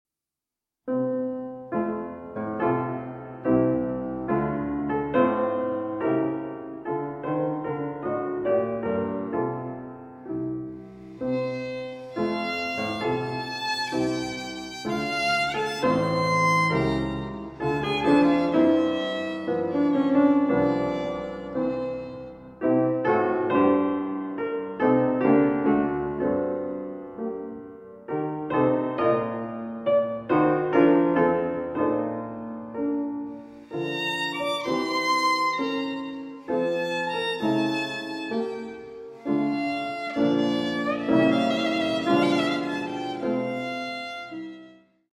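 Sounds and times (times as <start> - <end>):
violin sonata andante movement: 1.7 - 27.6, 28.2 - 45.1.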